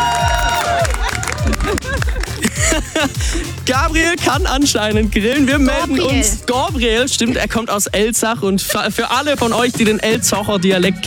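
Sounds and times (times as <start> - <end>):
whoops and excited voices: 0.0 - 2.5
party crowd clapping and cheering: 0.0 - 7.2
laughter: 0.0 - 10.2
speech: 3.7 - 11.0.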